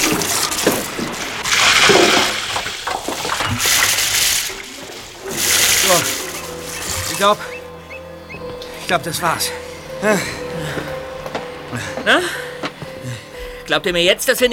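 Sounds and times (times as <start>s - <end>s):
bucket of water poured through a hatch: 0.0s - 7.4s
speech: 7.2s - 7.5s, 8.9s - 10.5s, 12.0s - 12.4s, 13.7s - 14.5s.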